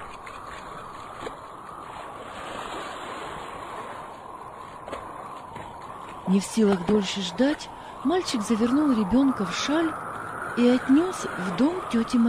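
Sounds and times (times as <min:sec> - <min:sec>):
wind howling: 0:00.0 - 0:12.2
speech: 0:06.3 - 0:10.0, 0:10.6 - 0:12.2.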